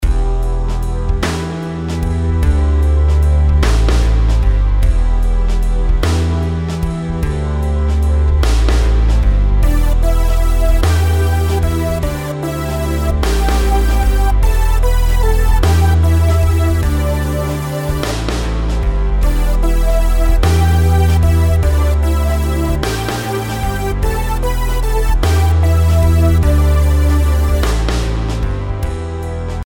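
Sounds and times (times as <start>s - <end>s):
compound melodies in E minor: 0.0s - 29.6s.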